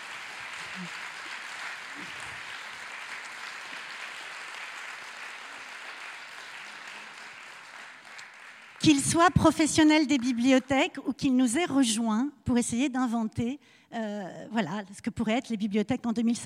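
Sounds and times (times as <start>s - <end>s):
audience applause: 0.0s - 9.0s
speech: 0.8s - 1.0s, 8.8s - 16.4s.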